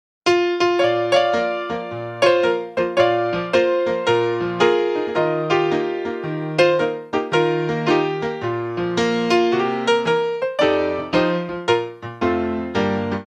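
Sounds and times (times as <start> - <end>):
gospel piano: 0.3 - 13.2.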